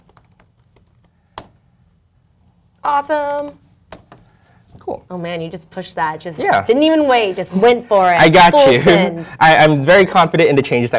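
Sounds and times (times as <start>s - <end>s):
typing on a computer keyboard while entering a git command: 0.0s - 1.6s
speech: 2.8s - 3.6s, 4.9s - 10.9s.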